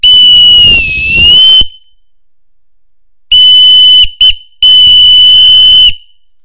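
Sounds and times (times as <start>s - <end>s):
whistle: 0.0s - 2.0s, 3.3s - 6.2s.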